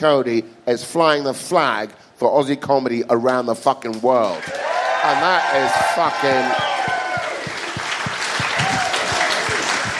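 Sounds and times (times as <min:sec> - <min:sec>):
speech: 0:00.0 - 0:06.7
live audience applause: 0:04.3 - 0:09.9
faint cheer or murmur: 0:04.4 - 0:09.9.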